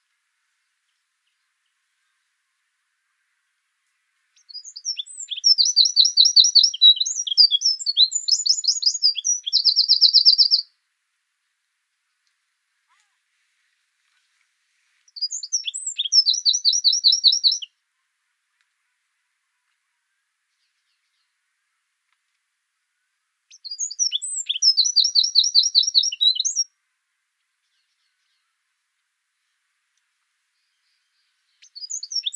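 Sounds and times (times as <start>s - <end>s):
Eurasian wren song: 4.5s - 10.6s, 15.2s - 17.7s, 23.6s - 26.6s, 31.6s - 32.3s.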